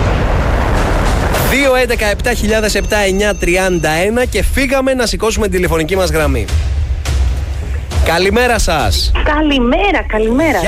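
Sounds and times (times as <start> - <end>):
bomb explosion sound effect from the radio game Beat the Bomb: 0.0 - 2.9
speech: 1.6 - 6.7, 8.0 - 10.6.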